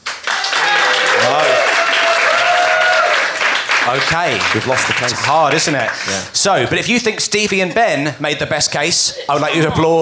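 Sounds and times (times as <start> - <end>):
theatre audience applause: 0.0 - 6.7
speech: 3.9 - 10.0.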